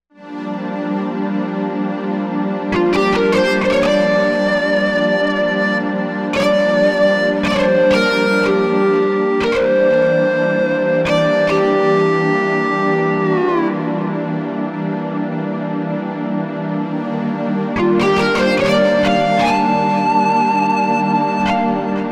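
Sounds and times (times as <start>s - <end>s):
whammy synth pad: 0.2s - 22.1s.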